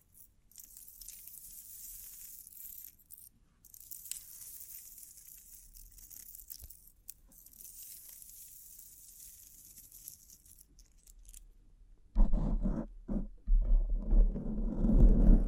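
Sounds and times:
soft airy crinkling: 0.0 - 11.7
heavier thumping and rubbing: 12.2 - 15.4.

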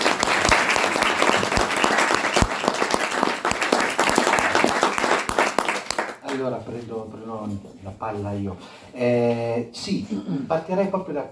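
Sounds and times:
audience applause: 0.0 - 6.4
speech: 6.4 - 11.3.

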